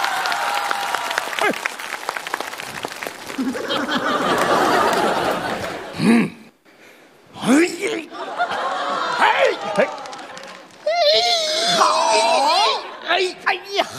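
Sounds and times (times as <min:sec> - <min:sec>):
audience applause: 0:00.0 - 0:06.0, 0:08.2 - 0:11.9
laughter: 0:03.2 - 0:06.4, 0:07.9 - 0:13.7.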